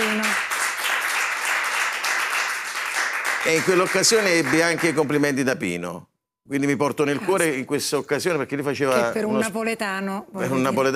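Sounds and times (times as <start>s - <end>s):
audience applause: 0.0s - 5.3s
speech: 3.4s - 10.9s.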